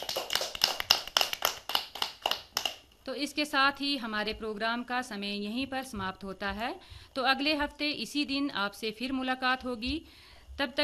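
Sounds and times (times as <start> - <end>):
hand clapping: 0.0 - 2.9
speech: 3.1 - 10.8.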